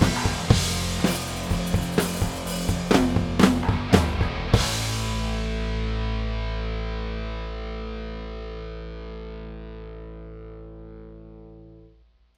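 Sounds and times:
drum stems: 0.0 - 8.0.

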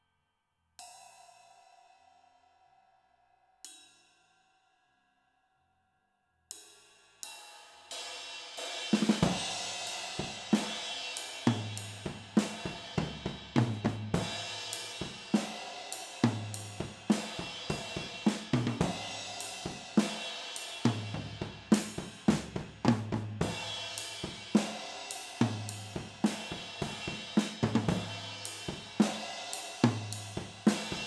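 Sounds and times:
drums recorded with overhead stereo microphones: 6.5 - 31.0.

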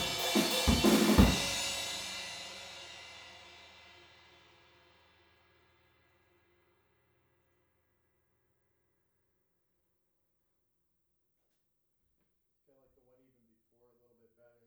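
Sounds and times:
drums recorded with PZM omni stereo microphones: 0.0 - 5.8.

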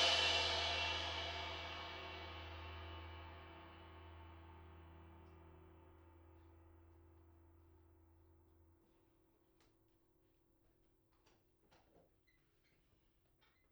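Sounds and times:
drums: 0.0 - 4.2.

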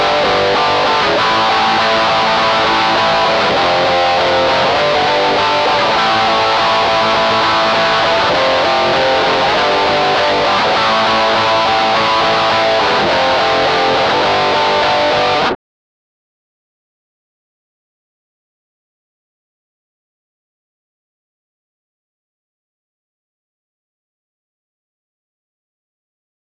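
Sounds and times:
electric guitar through studio preamp: 0.0 - 15.6.

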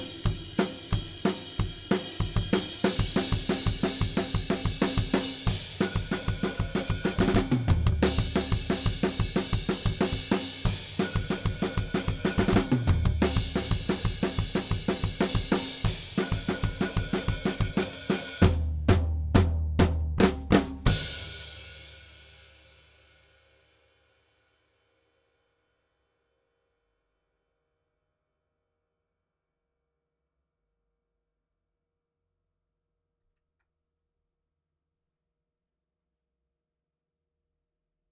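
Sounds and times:
drums: 0.0 - 24.4.

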